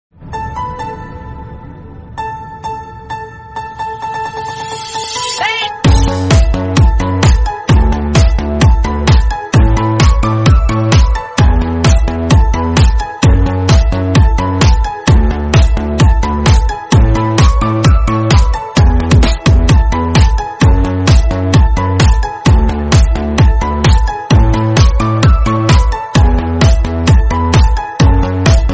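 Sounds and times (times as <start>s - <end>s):
deep house remix: 3.8s - 28.7s.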